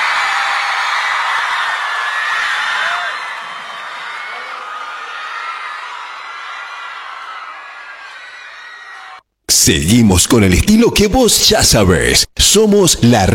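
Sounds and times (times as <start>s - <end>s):
concert audience applause and cheering: 0.0s - 9.2s
speech: 9.7s - 13.3s.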